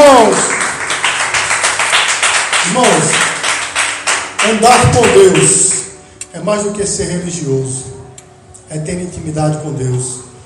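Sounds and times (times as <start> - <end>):
audience applause: 0.0 - 5.5
speech: 2.8 - 3.2, 4.5 - 5.7, 6.3 - 7.9, 8.7 - 10.3.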